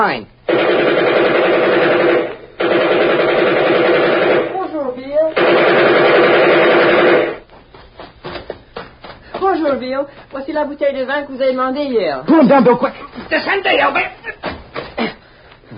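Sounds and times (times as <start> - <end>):
speech: 0.0 - 1.0, 9.7 - 14.1
machine-gun covering fire: 0.5 - 7.4
laughter: 12.3 - 13.6.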